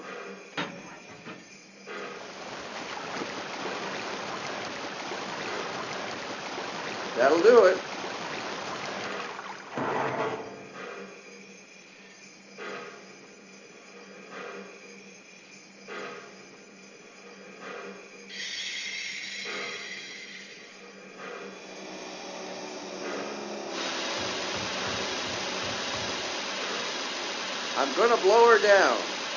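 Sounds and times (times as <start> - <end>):
trains: 0.6 - 11.0, 17.7 - 29.3.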